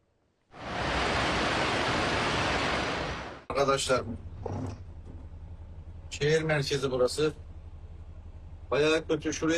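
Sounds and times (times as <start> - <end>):
floodwater from overflowing streams rushing through a city centre in Samsun: 0.6 - 3.4
speech: 3.6 - 4.8, 6.1 - 7.4, 8.7 - 9.5.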